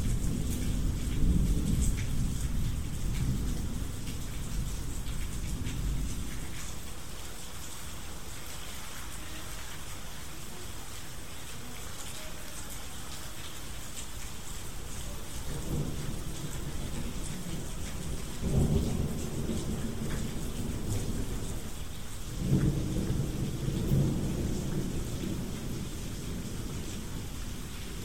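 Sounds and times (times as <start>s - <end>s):
thunderstorm: 0.0s - 7.0s, 14.4s - 28.0s
rain: 0.0s - 28.0s.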